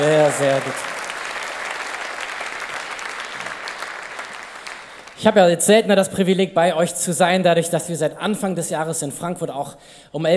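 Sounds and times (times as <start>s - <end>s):
speech: 0.0s - 1.0s, 5.2s - 10.3s
applause: 0.0s - 5.4s.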